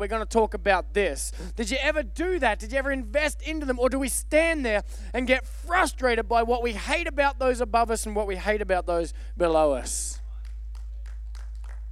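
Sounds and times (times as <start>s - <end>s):
speech: 0.0s - 10.2s
person clapping: 10.2s - 11.9s.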